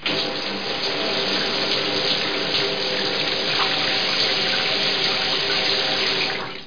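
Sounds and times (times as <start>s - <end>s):
shower running: 0.0s - 6.6s.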